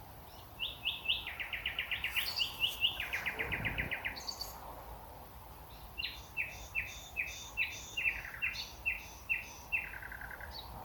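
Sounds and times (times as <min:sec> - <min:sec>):
Common Nightingale song with trills and whistles: 0:00.0 - 0:04.7, 0:05.4 - 0:10.8.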